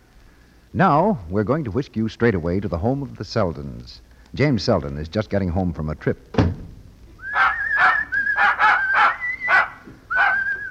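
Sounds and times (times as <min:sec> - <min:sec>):
speech: 0:00.7 - 0:06.6
dog whimpering: 0:07.3 - 0:10.6.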